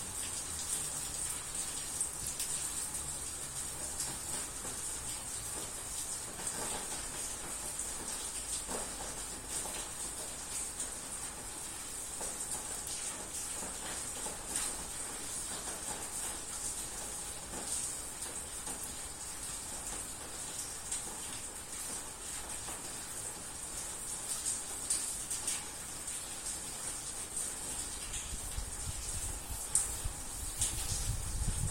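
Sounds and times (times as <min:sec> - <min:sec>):
afternoon rain in Rotterdam: 0:00.0 - 0:31.7.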